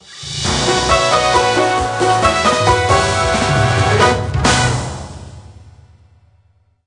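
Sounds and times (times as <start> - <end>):
victory theme music: 0.2 - 5.6.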